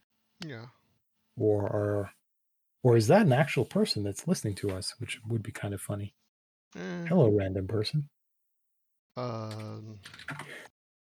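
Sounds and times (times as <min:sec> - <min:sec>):
speech: 0:00.4 - 0:00.8, 0:01.4 - 0:02.2, 0:02.8 - 0:08.2, 0:09.2 - 0:10.7
person humming a steady note: 0:06.8 - 0:07.2, 0:09.2 - 0:10.0
computer keyboard typing: 0:09.5 - 0:10.7.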